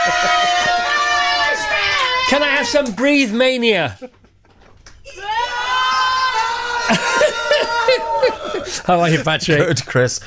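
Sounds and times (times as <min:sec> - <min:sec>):
laughter: 0:00.0 - 0:01.9, 0:04.0 - 0:10.2
control room staff applauding and cheering: 0:00.0 - 0:04.0, 0:04.8 - 0:08.8
speech: 0:00.1 - 0:00.7, 0:02.3 - 0:04.2, 0:06.9 - 0:10.2.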